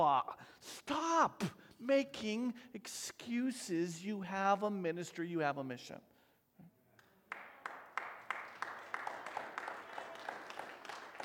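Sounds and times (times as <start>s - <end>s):
speech: 0.0s - 6.7s
audience clapping: 7.0s - 11.2s.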